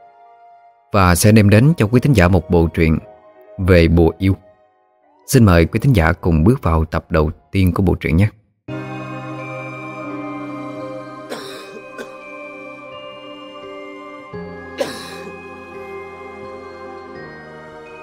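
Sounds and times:
speech: 0.9s - 4.4s, 5.3s - 8.4s
rapid dry coughing: 11.3s - 12.2s, 14.8s - 15.4s.

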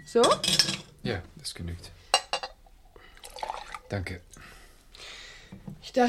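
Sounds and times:
speech: 0.2s - 2.0s, 3.9s - 4.5s, 5.9s - 6.0s
whisky poured over ice into glass: 3.2s - 3.9s.

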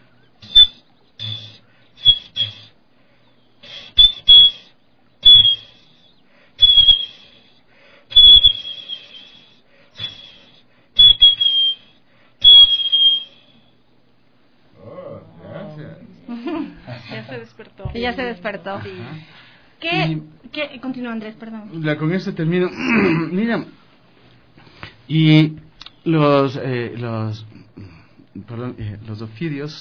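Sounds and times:
artisan-crafted whistle imitating an eagle's cry: 0.4s - 2.7s, 3.6s - 6.0s, 6.6s - 7.4s, 8.1s - 13.6s
laughter: 16.2s - 17.8s
speech: 17.6s - 23.8s, 25.1s - 27.5s, 28.4s - 29.7s.

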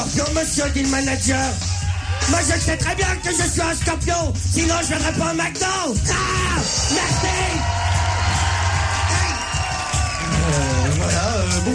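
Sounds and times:
speech: 0.2s - 1.7s, 2.3s - 7.8s
audience applauding and cheering: 1.6s - 3.9s, 6.5s - 11.7s.

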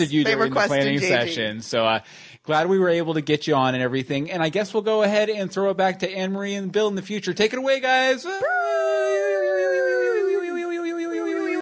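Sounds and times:
speech: 0.0s - 9.3s
person yawning: 8.3s - 11.6s.

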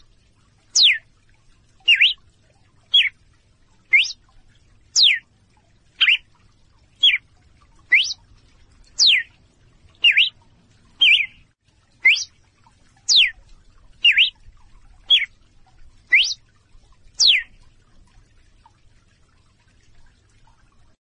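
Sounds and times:
female red-cowled cardinal calling in clear short whistles: 0.8s - 1.0s, 1.9s - 2.2s, 3.9s - 4.2s, 5.0s - 5.2s, 6.0s - 6.2s, 7.9s - 8.2s, 9.0s - 9.3s, 10.0s - 10.4s, 11.0s - 11.4s, 12.0s - 12.3s, 13.1s - 13.3s, 14.0s - 14.4s, 16.1s - 16.4s, 17.2s - 17.5s.

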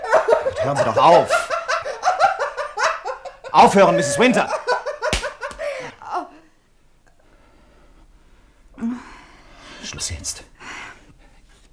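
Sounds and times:
laughter: 0.0s - 6.4s
speech: 0.6s - 1.4s, 3.5s - 4.6s
slap in the face: 5.1s - 5.7s.

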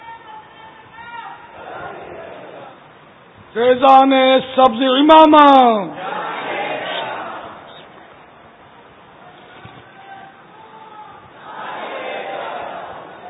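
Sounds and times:
crowd chanting a religious slogan: 1.4s - 2.9s, 5.9s - 8.1s, 11.4s - 13.2s
murmuring voices: 1.5s - 2.9s, 5.9s - 8.1s, 11.2s - 13.2s
speech: 3.6s - 6.0s.

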